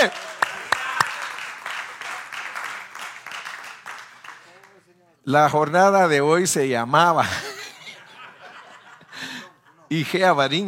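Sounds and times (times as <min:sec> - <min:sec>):
speech: 0:00.0 - 0:00.3, 0:05.2 - 0:07.5, 0:09.9 - 0:10.6
audience applause: 0:00.0 - 0:04.8
laughter: 0:07.2 - 0:10.3.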